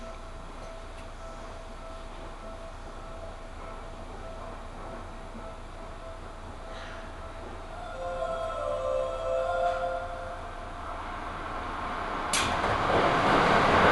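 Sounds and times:
faint tones humming through the train cabin: 0.0 - 12.6
Seibu Ikebukuro Line local train rumble between Ikebukuro and Kiyose: 0.0 - 13.9
train whining pitch rising: 7.8 - 12.6.

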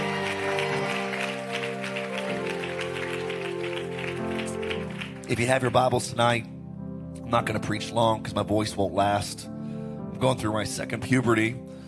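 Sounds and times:
audience hand clapping: 0.0 - 6.1
organ or keyboard chords: 0.0 - 7.7
speech: 5.3 - 6.5, 7.3 - 9.5, 10.2 - 11.7.

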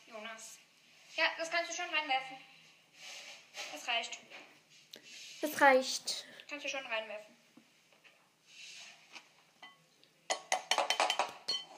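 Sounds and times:
speech: 1.2 - 7.3
bowl clinking while butter is cut: 9.6 - 11.7.

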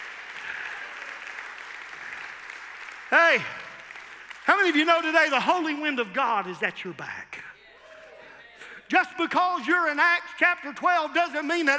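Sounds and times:
crowd clapping: 0.0 - 6.0
speech: 3.1 - 3.6, 4.5 - 7.3, 8.9 - 11.7.

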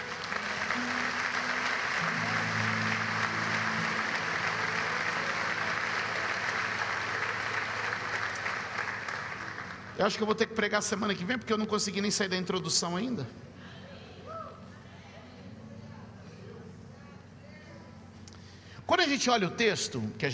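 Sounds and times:
low sustained organ or keyboard tones: 0.0 - 10.0
audience applause: 0.0 - 10.3
speech: 10.0 - 13.5, 19.2 - 20.3.

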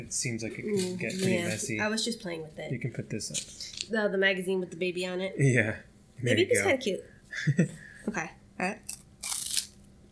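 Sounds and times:
speech: 0.0 - 9.0
biting into a crunchy Japanese wafer snack: 8.9 - 9.8.

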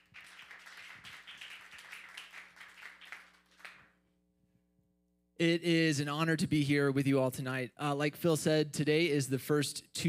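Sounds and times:
audience applause: 0.0 - 3.9
speech: 5.4 - 10.0.

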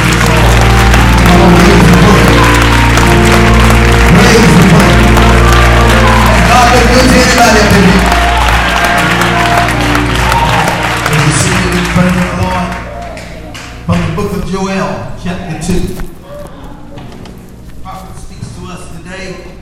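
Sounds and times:
audience clapping hands: 0.0 - 14.5.

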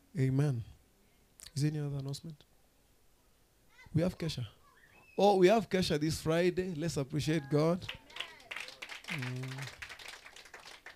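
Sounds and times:
speech: 0.2 - 0.7, 1.6 - 2.5, 3.9 - 4.6, 5.2 - 8.2, 9.1 - 9.8
crowd clapping: 7.8 - 10.9.

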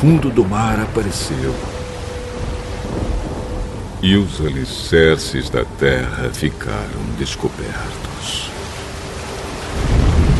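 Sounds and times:
speech: 0.0 - 1.8, 4.0 - 8.5
deep low thunder rumble: 0.0 - 10.3
steady hissing rain: 0.0 - 10.3.

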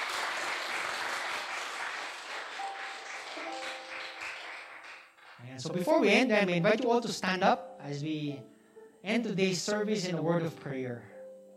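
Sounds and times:
audience clapping: 0.0 - 5.9
speech: 5.6 - 11.1.

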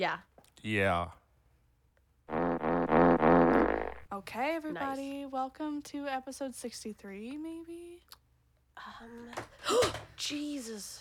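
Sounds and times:
speech: 0.0 - 1.2, 4.2 - 8.2, 8.8 - 10.9
loud buzzy fart: 2.3 - 4.1.

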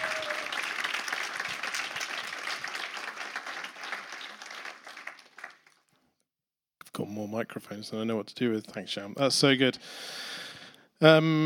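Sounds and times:
audience round of applause: 0.0 - 5.9
speech: 7.0 - 10.3, 11.0 - 11.4.

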